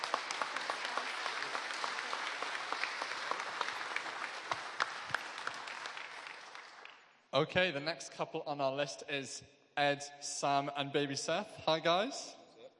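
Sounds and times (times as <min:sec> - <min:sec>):
audience applause: 0:00.0 - 0:07.0
speech: 0:07.4 - 0:12.4.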